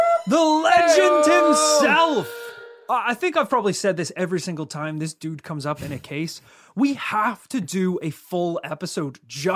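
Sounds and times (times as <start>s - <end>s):
alarm sound effect: 0.2s - 2.9s
speech: 2.2s - 9.5s.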